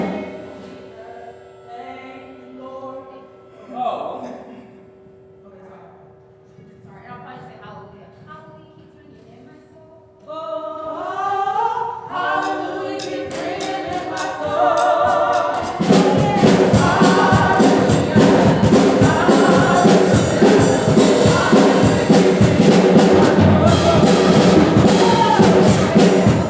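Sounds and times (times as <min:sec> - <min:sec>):
song: 0:12.1 - 0:26.4.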